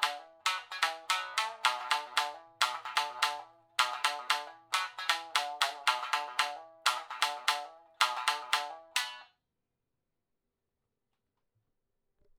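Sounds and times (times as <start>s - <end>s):
backbeat: 0.0s - 9.2s
shamisen: 0.0s - 9.3s.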